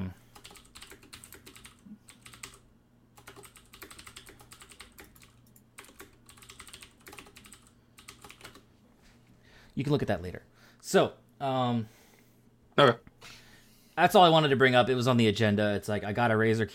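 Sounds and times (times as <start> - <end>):
typing on a computer keyboard: 0.3 - 2.6, 3.2 - 8.6
speech: 9.8 - 12.0, 12.8 - 13.1, 14.0 - 16.7.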